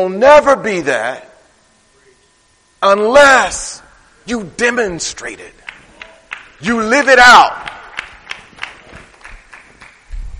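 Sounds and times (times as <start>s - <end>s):
speech: 0.0s - 1.3s, 2.8s - 5.6s, 6.6s - 7.8s
people clapping: 5.6s - 10.2s.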